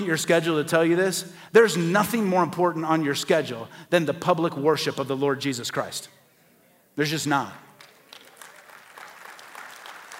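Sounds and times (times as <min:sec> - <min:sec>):
speech: 0:00.0 - 0:06.2, 0:07.0 - 0:07.7
faint golf clap from a church congregation: 0:07.8 - 0:10.1.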